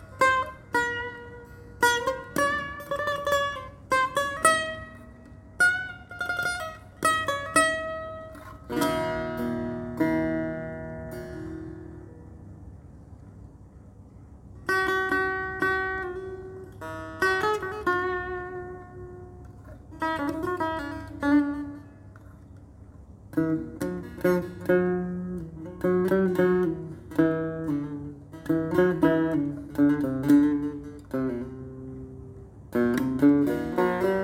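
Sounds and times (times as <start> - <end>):
setar playing: 0.0 - 12.9, 14.5 - 34.2.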